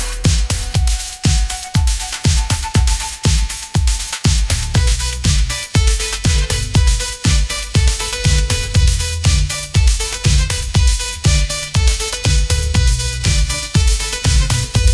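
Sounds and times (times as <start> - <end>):
pop groove: 0.0 - 14.9.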